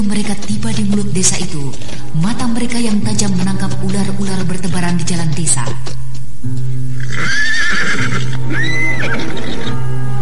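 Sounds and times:
speech: 0:00.0 - 0:06.6
faint clop of hooves: 0:00.0 - 0:09.7
horse neighing: 0:07.0 - 0:09.8.

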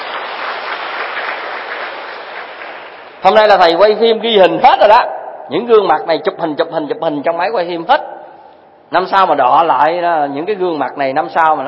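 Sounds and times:
audience applauding at a Buddhist lecture: 0:00.0 - 0:03.2
speech: 0:03.2 - 0:08.1, 0:08.9 - 0:11.6.

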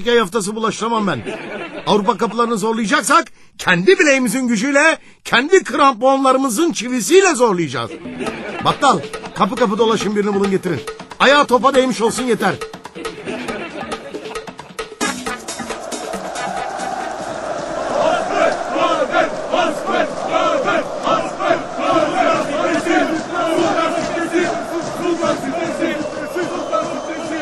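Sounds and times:
speech: 0:00.0 - 0:13.0
laughter: 0:01.0 - 0:02.8, 0:07.8 - 0:10.4, 0:12.9 - 0:27.4
football crowd roaring and chanting at an artificial turf pitch in Beykoz: 0:15.0 - 0:27.4.

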